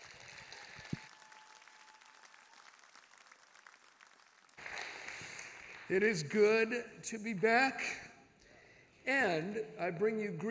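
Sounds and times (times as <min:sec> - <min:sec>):
audience applauding to welcome preacher Bayless Conley at a church service: 0:00.0 - 0:05.9
speech: 0:05.9 - 0:08.0, 0:09.0 - 0:10.4.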